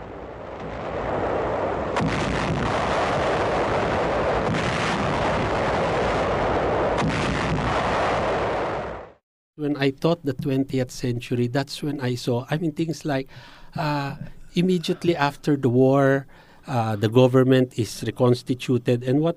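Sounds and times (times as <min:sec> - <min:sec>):
heavy naval guns bombarding a coastline: 0:00.0 - 0:09.2
speech: 0:09.6 - 0:19.3.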